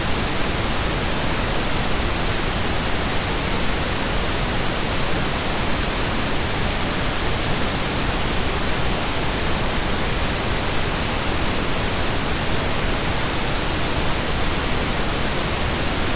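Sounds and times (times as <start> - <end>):
pink noise: 0.0 - 16.1.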